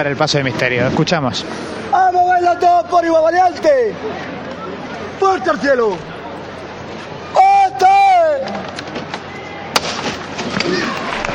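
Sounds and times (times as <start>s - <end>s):
speech: 0.0s - 4.5s, 5.2s - 6.1s
crowd voices: 0.0s - 11.3s
sharp crack: 8.4s - 11.3s
large audience clapping: 10.9s - 11.3s.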